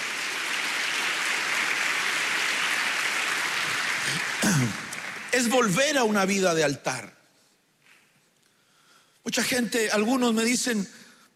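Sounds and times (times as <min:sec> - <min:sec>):
audience clapping hands: 0:00.0 - 0:06.4
speech: 0:04.1 - 0:04.8, 0:05.4 - 0:07.2, 0:09.2 - 0:11.3.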